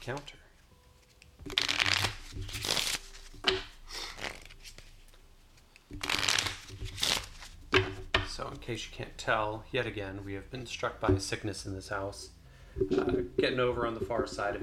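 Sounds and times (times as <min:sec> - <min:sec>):
speech: 0:00.0 - 0:00.4, 0:08.6 - 0:14.6
shuffling and dealing playing cards: 0:00.0 - 0:08.6.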